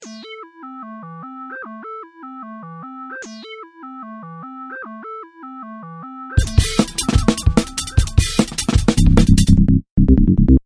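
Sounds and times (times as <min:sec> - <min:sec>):
Garageband beats: 0:06.4 - 0:09.6.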